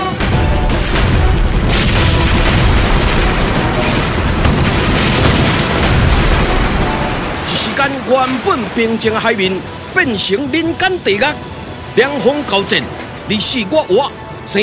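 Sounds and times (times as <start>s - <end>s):
warship cannons firing in a sea battle: 0.2s - 9.3s
speech: 8.1s - 14.6s.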